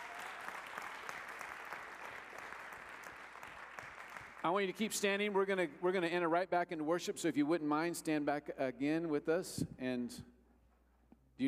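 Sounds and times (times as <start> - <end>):
audience applause: 0.0 - 4.4
speech: 4.4 - 10.3.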